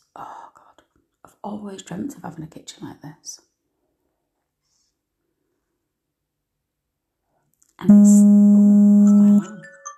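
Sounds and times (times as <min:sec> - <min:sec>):
speech: 0:01.4 - 0:03.5
alarm going off: 0:07.9 - 0:09.6.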